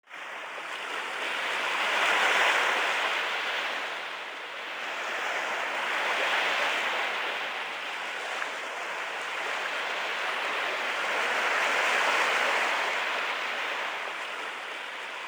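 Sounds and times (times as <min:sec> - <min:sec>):
sea: 0:00.0 - 0:15.2.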